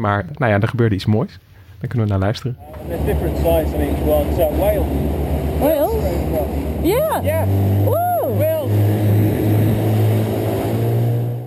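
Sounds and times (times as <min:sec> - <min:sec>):
speech: 0:00.0 - 0:09.2
small boat engine passing whales: 0:02.6 - 0:11.4.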